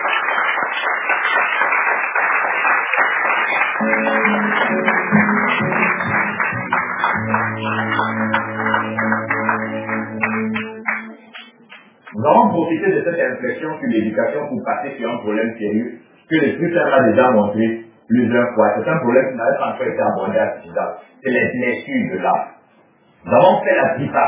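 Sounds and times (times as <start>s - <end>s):
crowd audience applause: 0.0s - 12.1s
speech: 12.6s - 22.6s, 23.2s - 24.2s.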